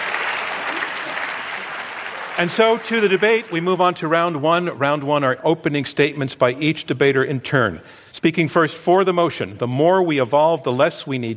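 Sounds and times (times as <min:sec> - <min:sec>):
audience applause: 0:00.0 - 0:04.2
speech: 0:02.4 - 0:11.3.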